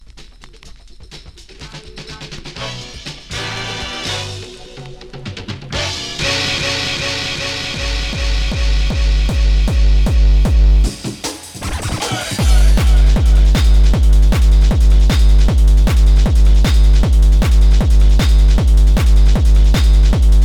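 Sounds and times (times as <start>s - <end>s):
techno music: 1.5s - 20.4s.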